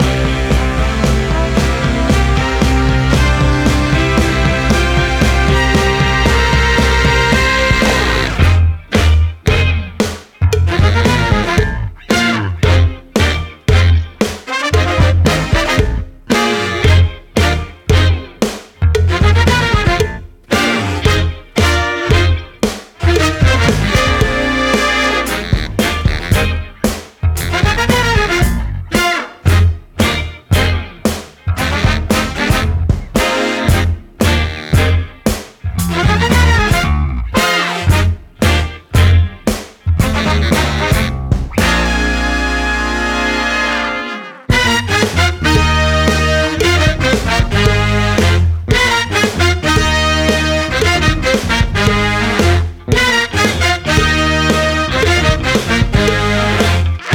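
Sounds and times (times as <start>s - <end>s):
80s brass pop: 0.0s - 57.1s.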